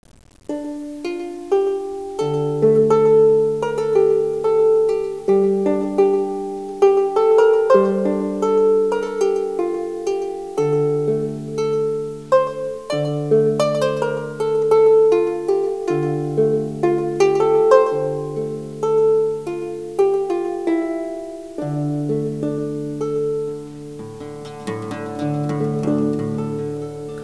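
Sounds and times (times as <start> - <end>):
psaltery: 0.1 - 27.2.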